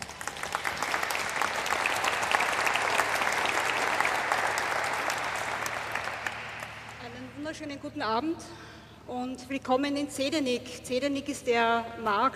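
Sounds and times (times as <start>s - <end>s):
audience applause: 0.0s - 7.0s
speech: 7.5s - 12.3s.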